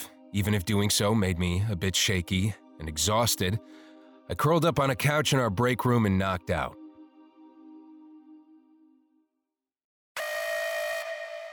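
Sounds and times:
speech: 0:00.3 - 0:06.8
alarm going off: 0:10.2 - 0:11.5.

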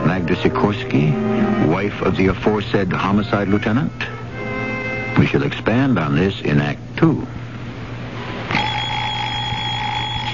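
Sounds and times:
low hum: 0:00.0 - 0:10.3
speech: 0:00.3 - 0:04.2, 0:05.2 - 0:07.4
battery-powered alarm clock ringing: 0:08.5 - 0:10.3.

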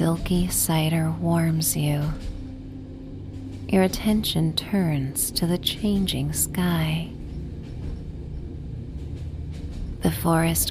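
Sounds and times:
speech: 0:00.0 - 0:02.4, 0:03.7 - 0:07.2, 0:10.0 - 0:10.7
train rumbling on tracks: 0:00.0 - 0:10.7.

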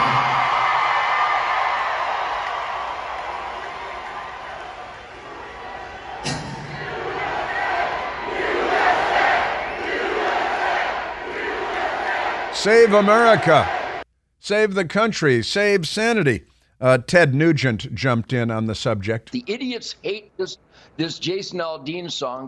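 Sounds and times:
large concert crowd cheering and shouting: 0:00.0 - 0:14.0
speech: 0:12.6 - 0:13.8, 0:14.5 - 0:22.4.

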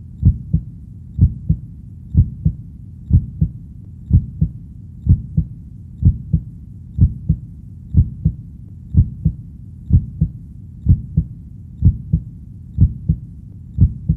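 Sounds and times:
heartbeat: 0:00.0 - 0:14.1.

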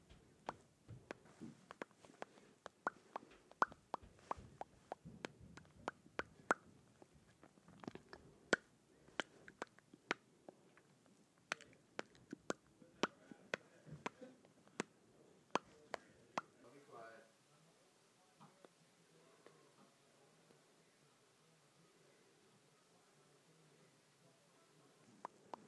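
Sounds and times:
soft mouth noise: 0:00.4 - 0:16.6
lips smacking: 0:00.5 - 0:14.9.

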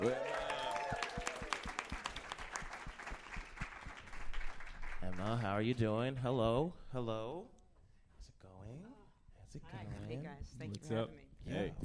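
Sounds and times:
speech: 0:00.0 - 0:00.3, 0:05.4 - 0:07.6, 0:08.7 - 0:11.8
audience applause for a comic on a comedy show: 0:00.0 - 0:05.4.

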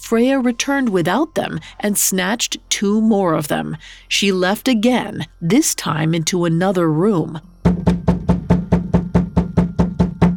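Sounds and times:
speech: 0:00.1 - 0:08.4
urgent knocking on a door: 0:07.6 - 0:10.3.

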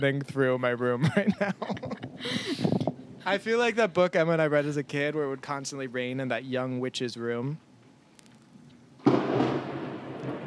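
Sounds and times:
speech: 0:00.0 - 0:07.7
laughter: 0:01.0 - 0:02.6
thunderclap: 0:09.0 - 0:10.4.

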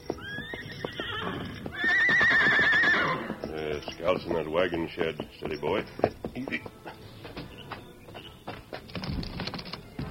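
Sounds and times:
horse whinny: 0:00.2 - 0:03.5
speech: 0:04.0 - 0:07.0.

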